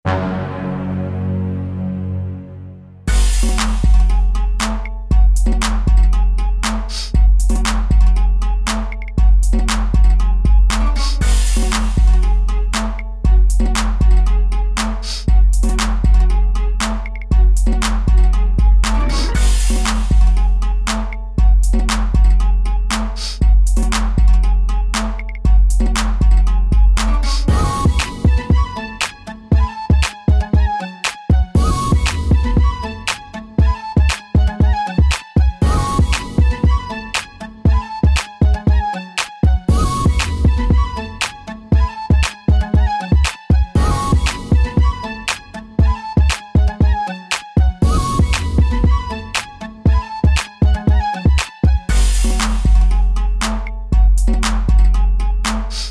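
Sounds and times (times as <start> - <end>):
instrumental music: 0.0 - 55.8.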